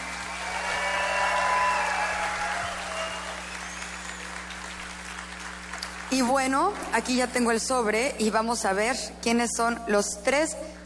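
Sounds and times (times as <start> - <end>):
audience applause: 0.0 - 6.3
speech: 6.1 - 10.8.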